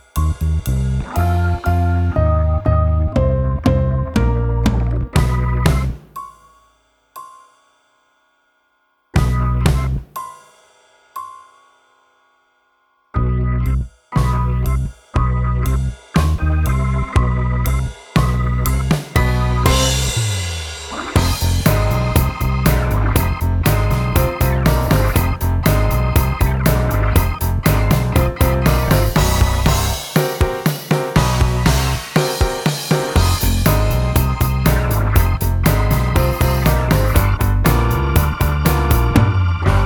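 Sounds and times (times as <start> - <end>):
sneaky instrumental music: 0.1 - 6.4, 9.1 - 10.2, 14.1 - 39.8.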